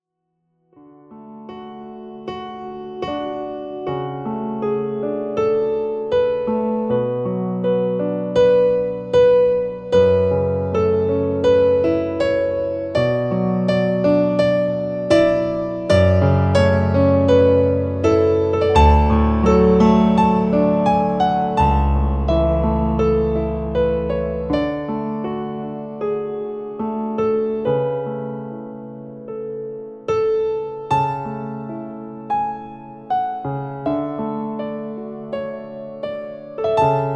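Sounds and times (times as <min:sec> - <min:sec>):
fantasia piano piece: 0:00.6 - 0:37.1.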